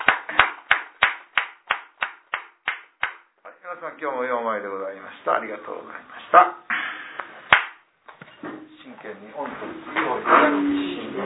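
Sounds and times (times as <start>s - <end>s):
hand claps for a 49th birthday: 0.0s - 3.3s, 7.5s - 7.8s
speech: 3.8s - 6.7s, 9.0s - 11.2s.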